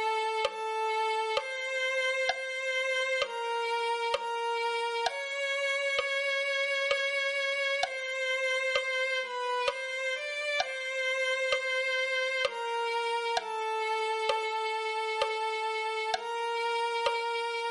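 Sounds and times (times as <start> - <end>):
viola playing: 0.0 - 17.7.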